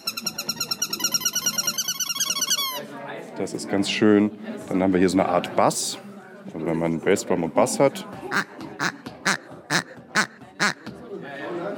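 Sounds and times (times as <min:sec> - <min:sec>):
speech: 0:03.4 - 0:08.5
small chicken squawking: 0:08.3 - 0:10.8.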